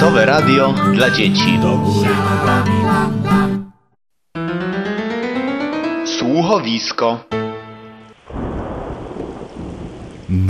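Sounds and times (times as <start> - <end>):
speech: 0.2 - 3.4, 6.4 - 7.4
tonal chord: 4.4 - 8.1
heavy rain: 8.1 - 10.4
thunder rumbling: 8.2 - 10.4.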